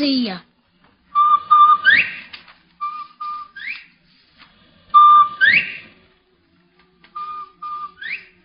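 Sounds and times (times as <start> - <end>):
whistled imitation of a bobwhite quail call: 1.1 - 3.9, 5.0 - 6.0, 7.2 - 8.4.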